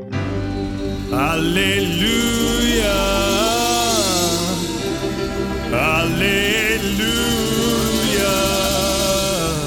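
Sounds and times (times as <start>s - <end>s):
gospel acclamation singing: 0.1s - 9.6s.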